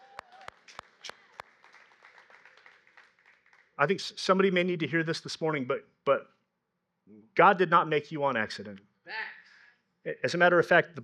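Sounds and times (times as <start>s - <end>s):
clapping: 0.0s - 3.8s
speech: 3.8s - 6.4s, 7.1s - 9.3s, 10.0s - 11.0s.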